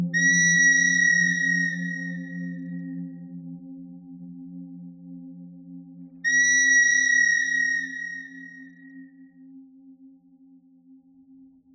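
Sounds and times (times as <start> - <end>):
pentatonic bird melody: 0.2 - 2.7, 6.3 - 8.8.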